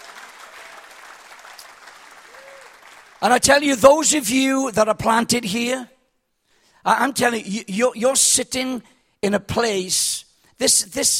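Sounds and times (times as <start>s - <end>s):
audience clapping: 0.0s - 3.6s
speech: 3.2s - 6.0s, 6.8s - 11.1s.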